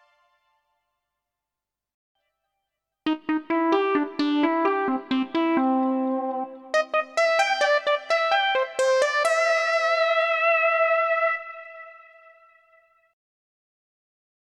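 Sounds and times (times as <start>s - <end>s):
Korg Pa1000 synthesizer: 0.0s - 0.8s, 3.1s - 13.2s.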